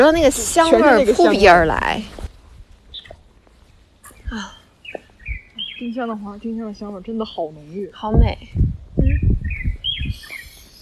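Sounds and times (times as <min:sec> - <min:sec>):
speech: 0:00.0 - 0:02.2, 0:04.3 - 0:04.6, 0:05.8 - 0:08.6
bird chirping: 0:02.9 - 0:03.2, 0:04.0 - 0:08.0, 0:09.1 - 0:10.7.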